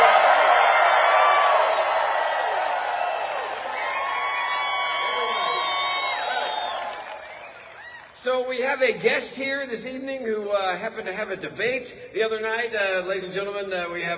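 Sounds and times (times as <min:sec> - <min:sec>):
audience whoops and shouts: 0:00.0 - 0:08.2
theater audience at Planet Hollywood cheering a greeting: 0:00.0 - 0:08.2
speech: 0:08.5 - 0:14.1.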